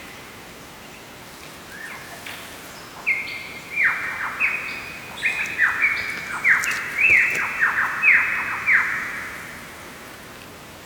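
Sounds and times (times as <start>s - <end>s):
Lyrebird song: 3.0s - 9.4s.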